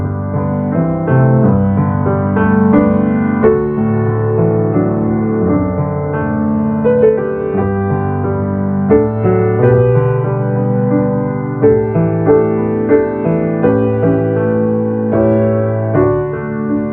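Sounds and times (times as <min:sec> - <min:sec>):
piano playing hard: 0:00.0 - 0:16.9.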